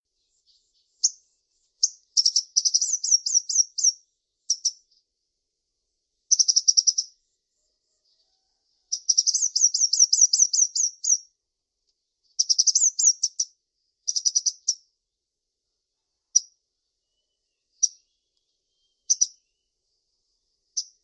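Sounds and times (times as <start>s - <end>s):
brown-throated sunbird repeating a high sharp chip: 0.4s - 5.0s, 6.3s - 7.2s, 9.0s - 11.2s, 12.3s - 14.9s, 17.2s - 19.6s.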